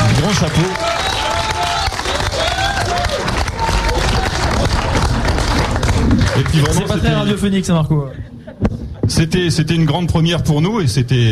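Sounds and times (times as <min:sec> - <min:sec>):
audience applause: 0:00.0 - 0:07.4
speech: 0:00.4 - 0:01.0, 0:06.6 - 0:08.4, 0:09.2 - 0:11.3.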